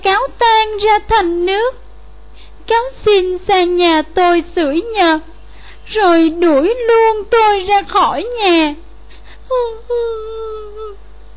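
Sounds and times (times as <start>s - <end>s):
steady hum: 0.0s - 11.3s
speech: 0.8s - 1.8s, 2.7s - 5.3s, 5.9s - 8.9s, 9.5s - 11.0s
voice acting a rabbit character crying in a fairy tale: 9.5s - 11.0s.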